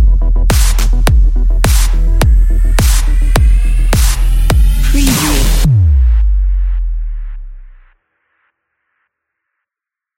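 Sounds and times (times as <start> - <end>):
sport action music: 0.0 - 7.3.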